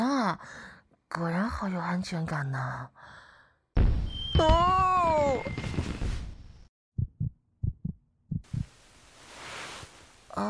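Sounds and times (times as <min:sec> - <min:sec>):
speech: 0:00.4 - 0:03.2, 0:03.8 - 0:06.0
fast heartbeat: 0:07.0 - 0:08.8.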